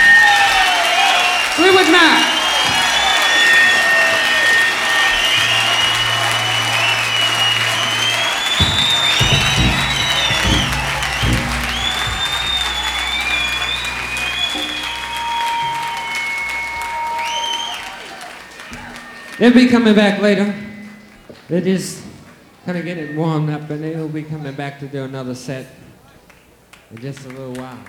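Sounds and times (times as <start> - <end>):
audience applause: 0.0 - 20.5
scattered cheers: 0.0 - 21.2
shrill whistles: 0.0 - 24.8
indistinct voices: 1.6 - 21.2
low hum: 5.0 - 17.8
speech: 19.4 - 20.7, 21.5 - 22.0, 22.6 - 25.8, 26.9 - 27.8.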